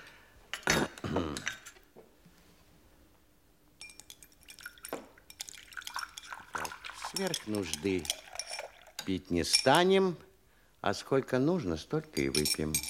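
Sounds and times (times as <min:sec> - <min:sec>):
tea pouring into cups: 0:03.8 - 0:09.7
china and cutlery clinking: 0:05.3 - 0:09.9, 0:12.1 - 0:12.8
speech: 0:07.2 - 0:08.2, 0:09.0 - 0:12.8.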